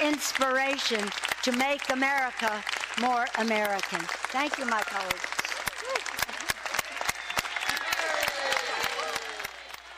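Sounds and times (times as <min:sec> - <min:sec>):
applause in the House chamber: 0:00.0 - 0:09.9
speech: 0:00.2 - 0:05.4.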